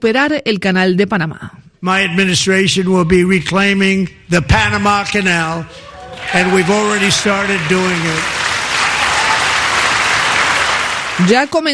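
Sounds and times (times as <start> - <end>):
speech: 0.0 - 8.4, 11.2 - 11.7
applause during Donald Trump's address to Congress: 5.8 - 11.7.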